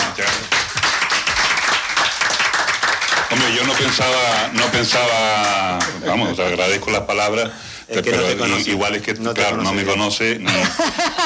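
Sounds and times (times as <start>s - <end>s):
applause: 0.0s - 6.0s
speech: 3.8s - 11.2s
laughter: 10.4s - 11.2s.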